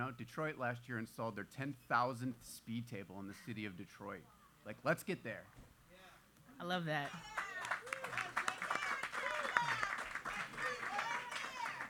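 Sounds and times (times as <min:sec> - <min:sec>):
speech: 0:00.0 - 0:05.7, 0:06.6 - 0:08.4
audience applause: 0:07.1 - 0:11.8.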